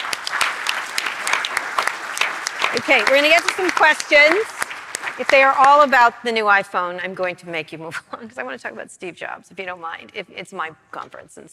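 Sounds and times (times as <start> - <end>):
audience applause: 0.0 - 6.2
speech: 2.8 - 4.6, 5.2 - 11.5.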